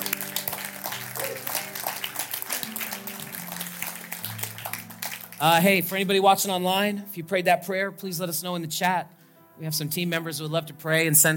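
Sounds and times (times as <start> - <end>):
church audience clapping: 0.0 - 6.1
speech: 5.4 - 11.3.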